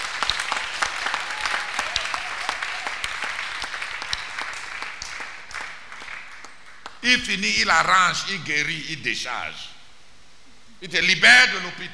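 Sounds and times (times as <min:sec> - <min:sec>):
audience applause: 0:00.0 - 0:07.0
speech: 0:07.1 - 0:09.7, 0:10.8 - 0:11.9.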